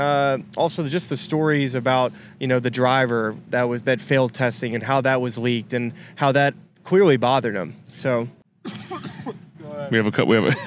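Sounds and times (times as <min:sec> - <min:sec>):
speech: 0:00.0 - 0:08.8, 0:09.9 - 0:10.6
person coughing: 0:08.7 - 0:09.4.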